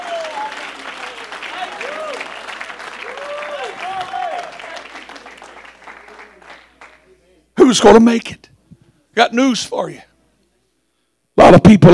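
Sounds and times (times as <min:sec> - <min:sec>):
audience clapping hands: 0:00.0 - 0:07.2
speech: 0:07.7 - 0:08.5, 0:09.2 - 0:10.1, 0:11.5 - 0:11.9.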